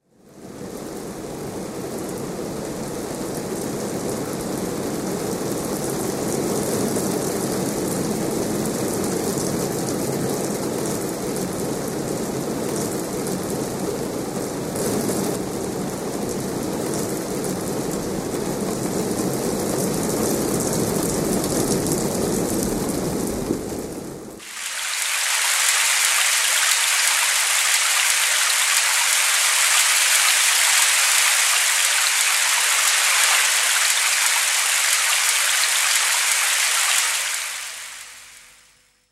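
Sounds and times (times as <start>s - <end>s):
rain falling: 0.1s - 38.7s.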